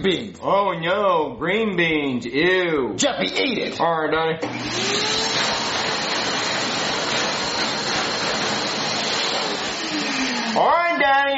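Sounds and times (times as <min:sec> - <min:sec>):
speech: 0:00.0 - 0:05.8, 0:10.6 - 0:11.3
vacuum cleaner running: 0:04.4 - 0:10.8.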